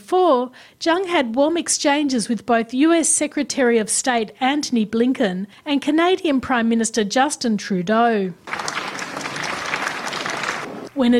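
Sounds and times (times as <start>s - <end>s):
speech: 0.1s - 8.8s, 11.0s - 11.1s
enthusiastic applause: 8.5s - 10.9s.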